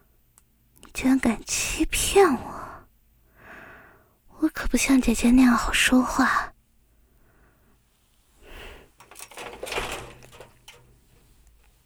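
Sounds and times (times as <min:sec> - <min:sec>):
speech: 0:01.0 - 0:02.5, 0:04.4 - 0:06.5
door being closed: 0:09.0 - 0:11.1.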